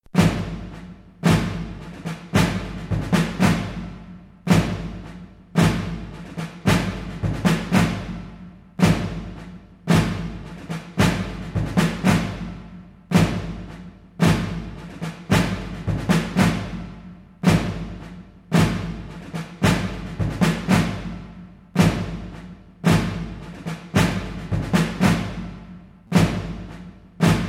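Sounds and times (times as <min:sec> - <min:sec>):
marching drum: 0:00.0 - 0:27.4.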